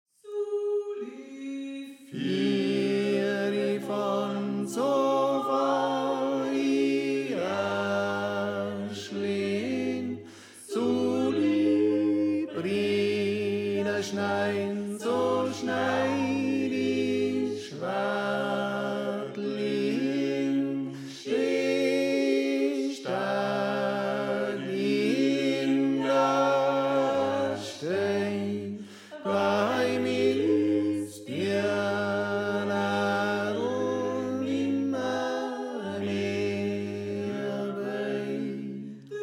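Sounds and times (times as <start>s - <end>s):
tenor singing: 0.2s - 39.2s.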